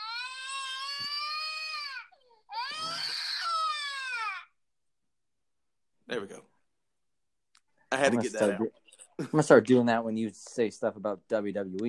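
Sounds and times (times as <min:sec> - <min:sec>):
whining crying sound effect: 0:00.0 - 0:04.6
speech: 0:06.1 - 0:06.5, 0:07.9 - 0:11.8.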